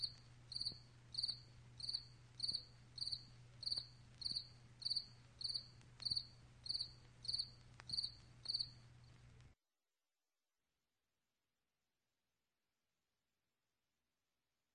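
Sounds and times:
cricket chirping: 0.0 - 9.2.

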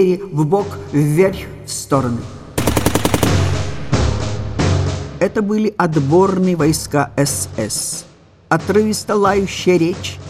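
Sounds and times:
speech: 0.0 - 2.4, 5.2 - 10.2
submachine gun fire: 2.6 - 4.4.

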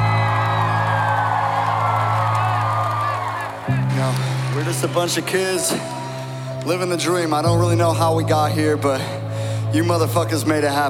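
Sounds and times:
concert crowd cheering and whooping: 0.0 - 6.7
scattered clapping: 0.0 - 7.6
speech: 4.0 - 6.0, 6.6 - 10.8.

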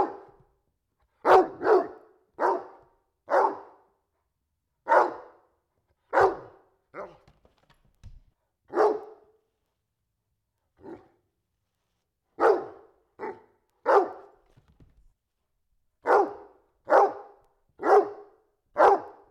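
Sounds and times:
domestic dog barking indoors: 0.0 - 0.4, 1.2 - 4.0, 4.8 - 5.5, 6.1 - 7.2, 8.7 - 9.4, 10.8 - 11.2, 12.4 - 14.4, 16.0 - 19.3.

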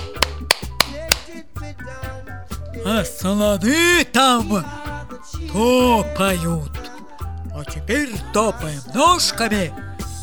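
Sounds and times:
hands clapping along to a children's action song: 0.0 - 1.4
children's action song music: 0.0 - 10.2
speech: 2.8 - 4.8, 5.5 - 6.7, 7.6 - 10.2.

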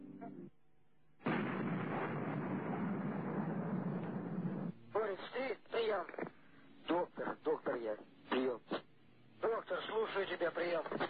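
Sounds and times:
gunfire in combat heard through radio traffic: 1.2 - 4.7
voice over the radio: 4.9 - 8.9, 9.4 - 11.0.

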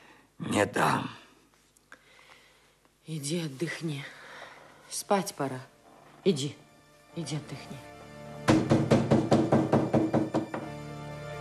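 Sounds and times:
speech: 0.6 - 1.2, 3.1 - 4.2, 4.9 - 6.6, 7.2 - 7.9
loud heavy banging on a door: 8.4 - 10.8.

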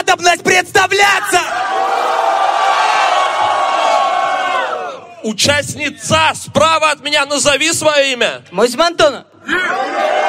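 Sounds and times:
speech: 0.1 - 2.2, 5.2 - 10.2
crowd cheering and ovation: 1.4 - 5.1, 9.6 - 10.2.

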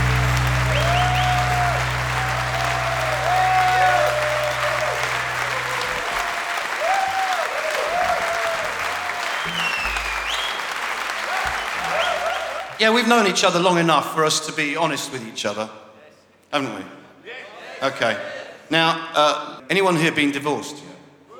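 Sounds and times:
crowd clapping: 0.0 - 13.3
speech: 12.8 - 15.8, 16.5 - 17.0, 17.8 - 20.9.

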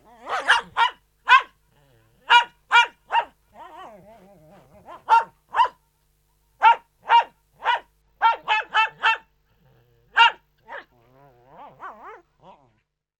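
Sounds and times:
poodle barking indoors: 0.2 - 1.6, 2.2 - 3.9, 4.8 - 5.8, 6.6 - 9.3, 10.1 - 10.9.

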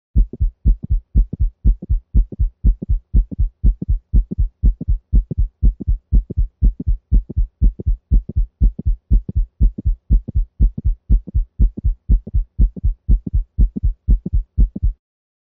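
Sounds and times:
rapid heartbeat with mitral valve mid-systolic clicks: 0.2 - 15.0.

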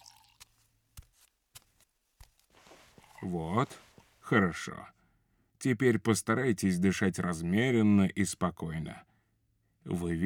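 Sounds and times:
person drinking a glass of water: 0.0 - 0.5, 2.6 - 4.2
speech: 3.2 - 5.0, 5.6 - 9.1, 9.8 - 10.2.

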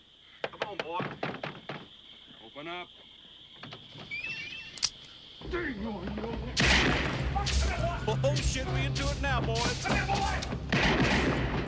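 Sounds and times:
speech: 0.8 - 1.4, 2.6 - 4.1, 5.4 - 11.4
men's voices: 5.4 - 10.7
gunshots: 6.6 - 8.6, 9.5 - 11.6.

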